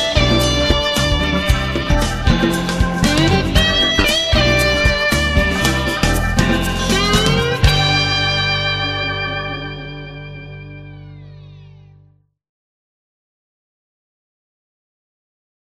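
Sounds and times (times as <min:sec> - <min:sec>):
funk music: 0:00.0 - 0:12.1.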